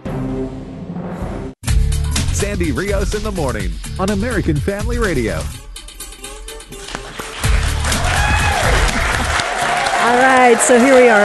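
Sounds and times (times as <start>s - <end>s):
speech: 2.4s - 5.6s, 10.0s - 11.2s
live morning audience applauding: 6.9s - 11.2s.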